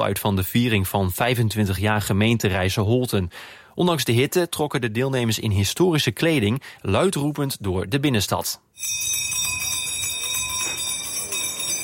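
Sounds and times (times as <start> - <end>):
speech: 0.0 - 9.1
town crier's handbell ringing: 8.8 - 11.8.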